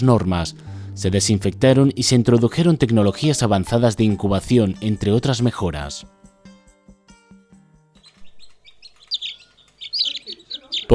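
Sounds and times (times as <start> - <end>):
speech: 0.0 - 6.2
newly hatched chicks chirping at a chicken farm: 8.0 - 10.9.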